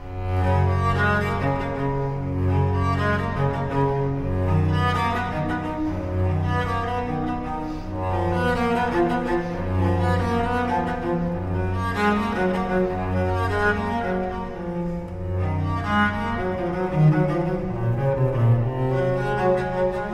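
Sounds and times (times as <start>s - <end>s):
cello suite: 0.0s - 20.1s.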